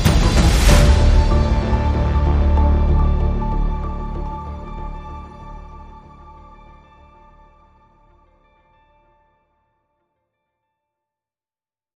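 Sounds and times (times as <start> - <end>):
strings: 0.0 - 8.6.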